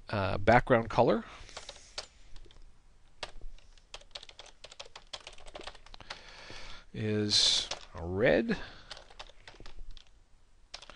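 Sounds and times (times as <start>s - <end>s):
speech: 0.1s - 1.5s, 7.0s - 8.8s
rapid typing of code on a computer keyboard: 1.5s - 2.6s, 3.2s - 6.2s, 7.5s - 8.0s, 8.8s - 10.1s, 10.7s - 10.9s.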